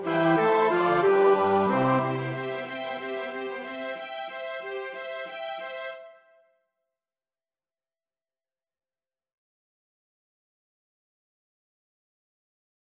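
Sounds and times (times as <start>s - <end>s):
bass: 0.0s - 2.7s.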